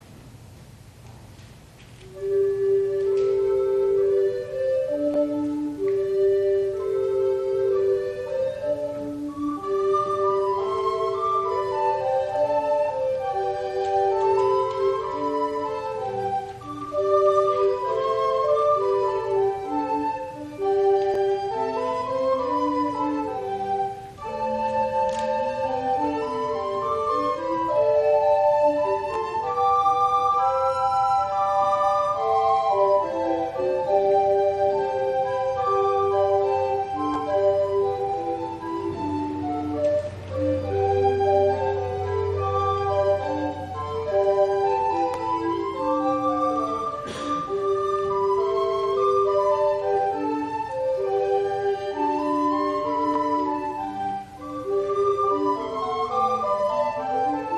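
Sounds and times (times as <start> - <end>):
recorder ensemble: 0.0 - 57.5.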